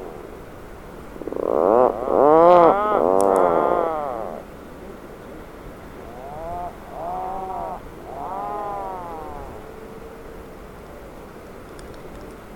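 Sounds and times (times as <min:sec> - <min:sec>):
Atlantic puffin moaning calls: 0:01.2 - 0:05.0, 0:05.9 - 0:11.2.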